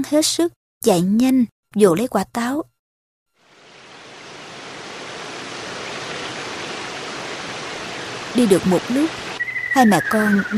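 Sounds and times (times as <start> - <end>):
speech: 0.0 - 2.7, 8.4 - 10.5
stream water flowing: 3.4 - 9.6.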